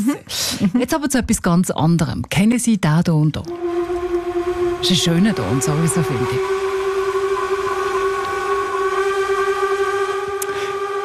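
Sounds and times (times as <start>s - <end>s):
speech: 0.0s - 3.8s, 4.8s - 6.7s
horn of the steamship Unterwalden: 3.5s - 11.0s.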